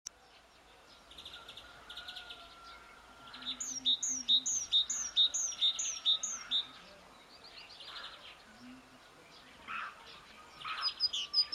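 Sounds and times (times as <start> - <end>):
soft chorus of other birds: 0.1 - 11.5
great tit bright high call notes: 3.3 - 6.8, 9.6 - 11.5.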